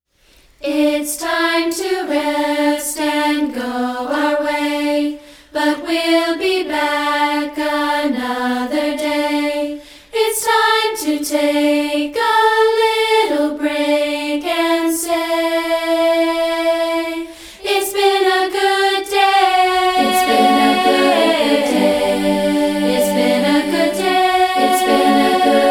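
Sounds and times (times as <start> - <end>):
a cappella singing: 0.6 - 25.6.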